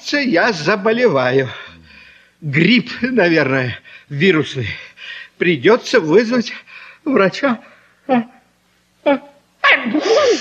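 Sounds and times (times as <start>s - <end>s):
speech: 0.1s - 1.6s, 2.4s - 8.4s, 9.0s - 10.4s
breathy vocal sound: 1.5s - 2.4s
sneezing: 9.6s - 10.4s.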